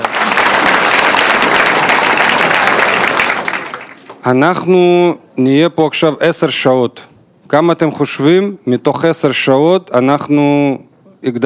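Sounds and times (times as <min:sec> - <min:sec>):
audience applause: 0:00.0 - 0:04.2
speech: 0:04.2 - 0:11.4.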